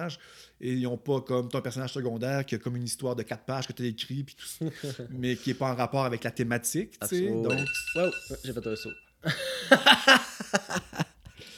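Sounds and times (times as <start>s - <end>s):
speech: 0.0s - 11.1s
phone alarm ringing: 7.4s - 9.2s
laughter: 9.3s - 11.2s.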